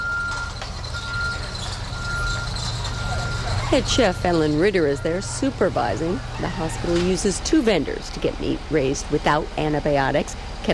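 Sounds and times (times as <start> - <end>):
truck backup beeps: 0.0 - 5.7
refrigerated truck loaded with meat backing up to a loading dock: 0.0 - 10.7
speech: 3.7 - 10.7.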